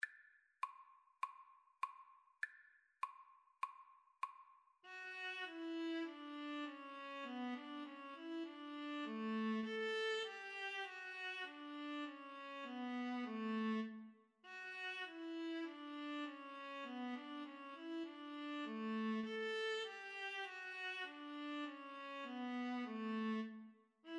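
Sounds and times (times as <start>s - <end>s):
viola duet: 4.9s - 24.1s.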